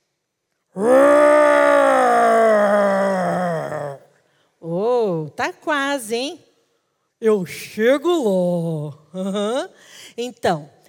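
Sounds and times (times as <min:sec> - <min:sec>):
speech: 0:00.7 - 0:01.0, 0:05.4 - 0:06.5, 0:07.2 - 0:10.8
person imitating a lion's roar: 0:00.8 - 0:04.1.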